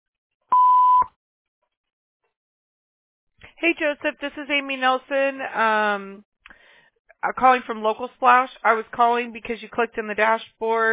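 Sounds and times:
answering machine electronic beep: 0:00.5 - 0:01.1
speech: 0:03.6 - 0:06.3, 0:07.2 - 0:10.9.

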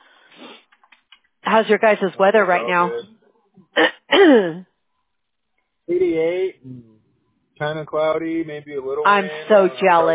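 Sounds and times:
speech: 0:01.5 - 0:03.1, 0:03.8 - 0:04.7, 0:05.9 - 0:06.9, 0:07.6 - 0:10.1
person coughing from allergies: 0:03.8 - 0:04.6.

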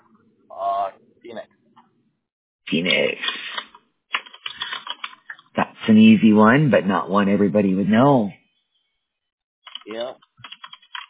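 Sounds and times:
speech: 0:02.7 - 0:03.2, 0:05.9 - 0:08.4
computer keyboard keystrokes typing a password: 0:02.8 - 0:05.5, 0:09.7 - 0:11.0.

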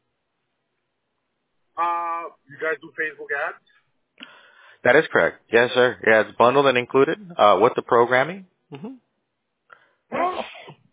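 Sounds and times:
speech: 0:01.8 - 0:09.0
faint breathy sound: 0:04.2 - 0:04.9
sneeze: 0:10.1 - 0:10.9.

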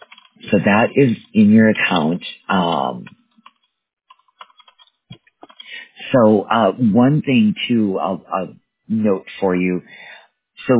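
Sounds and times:
typing on a computer keyboard: 0:00.0 - 0:00.4, 0:02.6 - 0:05.7
speech: 0:00.5 - 0:03.2, 0:06.1 - 0:10.7.

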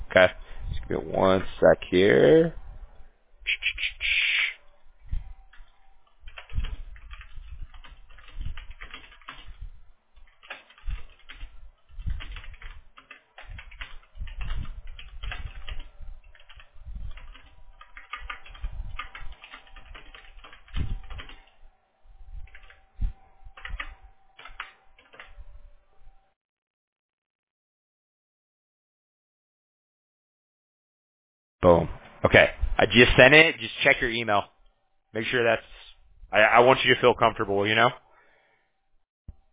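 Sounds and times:
speech: 0:00.2 - 0:02.6, 0:31.6 - 0:38.0
fingers typing on a computer keyboard while copying text: 0:05.5 - 0:21.6, 0:22.4 - 0:22.9, 0:23.5 - 0:25.4.

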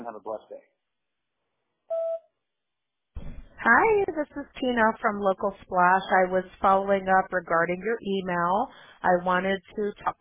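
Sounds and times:
speech: 0:00.0 - 0:00.8, 0:03.6 - 0:10.1
answering machine beep before a voicemail message: 0:01.9 - 0:02.3.

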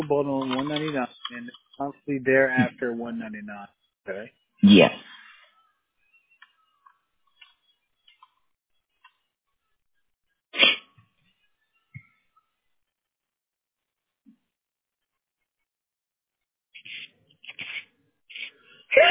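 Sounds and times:
speech: 0:00.1 - 0:05.2, 0:19.0 - 0:19.1
big sneeze: 0:10.6 - 0:10.9.

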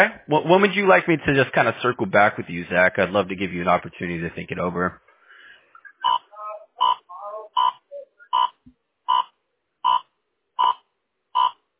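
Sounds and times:
speech: 0:00.0 - 0:05.0
radar detector beeping: 0:05.8 - 0:10.8.

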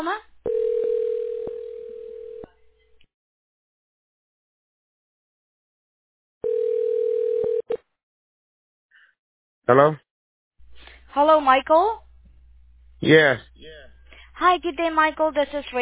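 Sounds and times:
telephone ringing on an outgoing call: 0:00.5 - 0:02.5, 0:06.4 - 0:07.8
speech: 0:09.7 - 0:10.0, 0:11.1 - 0:12.0, 0:13.0 - 0:15.7.

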